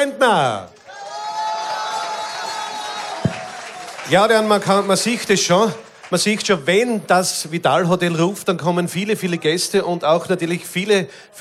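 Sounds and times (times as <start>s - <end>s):
speech: 0.0s - 0.8s, 4.1s - 11.4s
crowd applauding: 0.6s - 7.4s
whoops and shouts: 0.9s - 3.9s.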